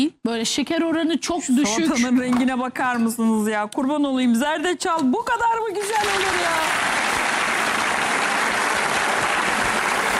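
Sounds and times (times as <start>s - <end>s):
speech: 0.0s - 7.0s
loud applause: 5.8s - 10.1s.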